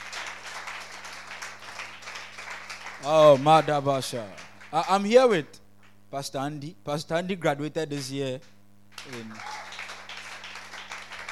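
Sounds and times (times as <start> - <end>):
congregation clapping at a New Year's Eve watch night church service: 0.0 - 6.0, 8.9 - 11.2
low constant hum: 0.0 - 11.2
speech: 3.0 - 9.5.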